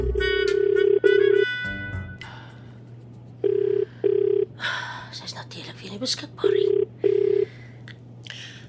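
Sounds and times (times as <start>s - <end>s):
telephone ringing: 0.1s - 1.5s, 3.4s - 4.5s, 6.4s - 7.5s.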